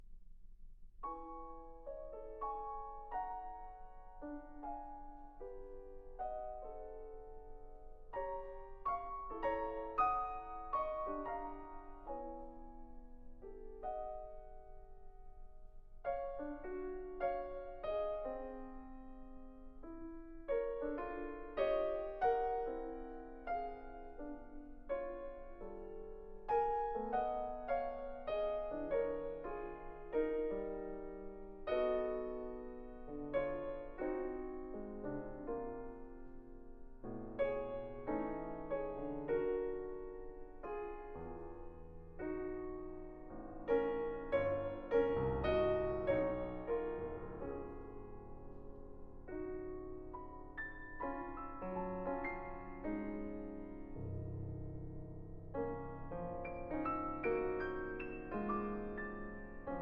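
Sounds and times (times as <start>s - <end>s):
piano etudes: 1.0s - 59.7s.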